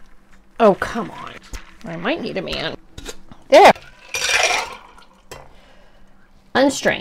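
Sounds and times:
speech: 0.6s - 2.8s, 3.5s - 3.8s, 6.6s - 6.9s
ice and cocktail ingredients being shaken: 3.8s - 5.2s.

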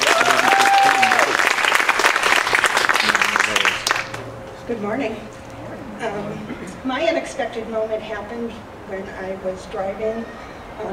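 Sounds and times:
whistle or cheer: 0.0s - 1.4s
audience applause: 0.0s - 4.2s
speech: 4.8s - 5.4s, 6.0s - 10.9s.

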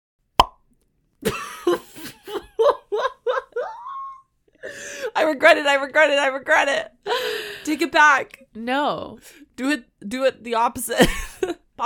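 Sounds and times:
mouth pop: 0.4s - 0.7s
choppy rhythmic laughter: 1.2s - 4.2s, 11.0s - 11.7s
speech: 5.2s - 6.9s, 7.6s - 11.8s.

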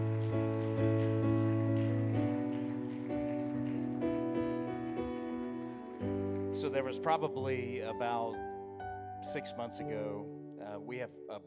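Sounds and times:
people clapping: 0.0s - 7.5s
speech: 6.6s - 8.5s, 9.2s - 11.4s.

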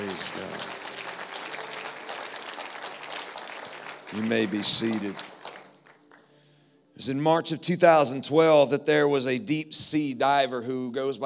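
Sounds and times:
audience hand clapping: 0.0s - 6.4s
speech: 4.1s - 5.3s, 7.0s - 11.2s.

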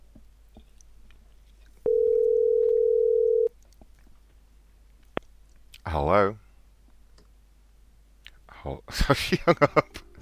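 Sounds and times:
telephone ringback tone while calling someone back: 1.9s - 3.5s
speech: 6.0s - 6.4s, 8.6s - 10.0s.

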